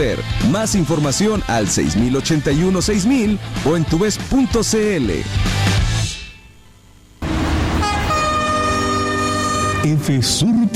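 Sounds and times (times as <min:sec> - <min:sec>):
speech: 0:00.0 - 0:05.9, 0:09.8 - 0:10.7
train horn blaring at a railway crossing: 0:07.2 - 0:10.4.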